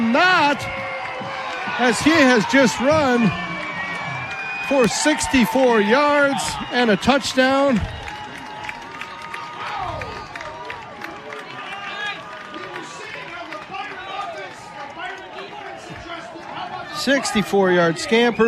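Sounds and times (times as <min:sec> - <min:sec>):
stadium crowd cheering after a touchdown run: 0:00.0 - 0:18.4
speech: 0:00.1 - 0:00.8, 0:01.8 - 0:03.5, 0:04.7 - 0:08.0, 0:17.0 - 0:18.4
shouts and whistles from a stadium crowd: 0:01.7 - 0:10.2, 0:18.0 - 0:18.4.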